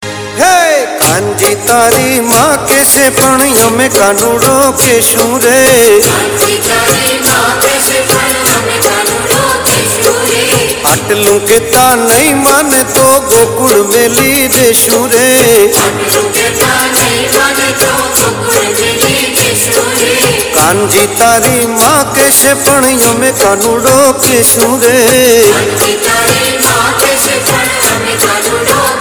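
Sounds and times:
Gujarati garbo folk dance music: 0.0s - 29.0s.

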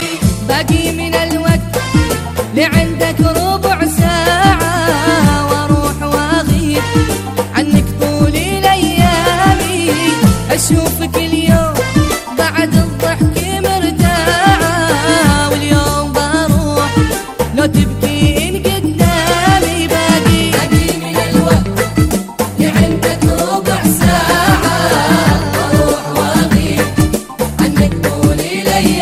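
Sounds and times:
khaliji music: 0.0s - 29.0s.

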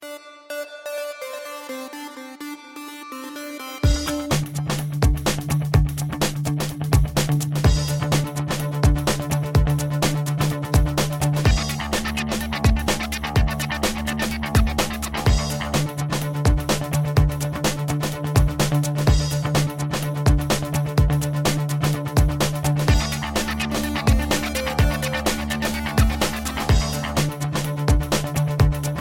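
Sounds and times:
guitar: 3.8s - 29.0s.

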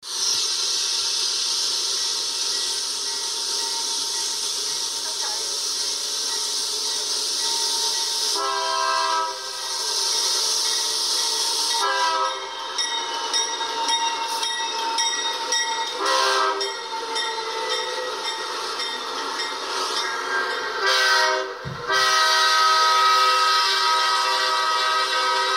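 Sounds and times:
BNSF Dash 9-44CW diesel locomotive: 0.0s - 25.5s.

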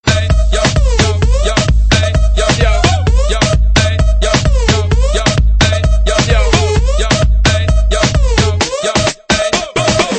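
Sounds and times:
DJ music: 0.0s - 10.1s.

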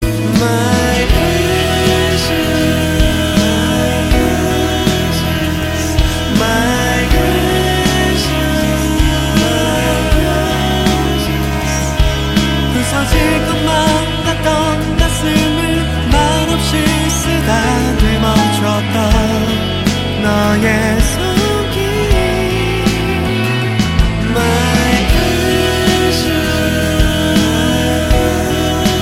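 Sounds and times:
chorus singing: 0.0s - 29.0s.

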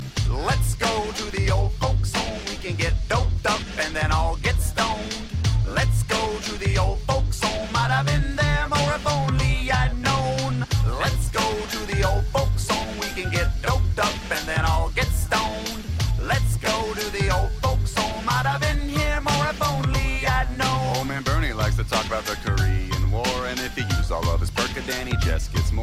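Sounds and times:
chorus singing: 0.3s - 25.8s.

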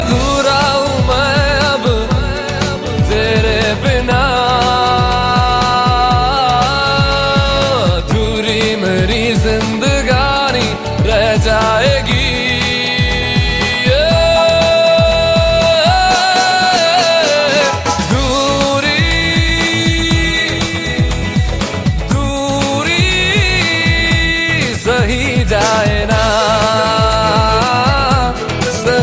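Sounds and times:
deep voice: 0.0s - 29.0s.

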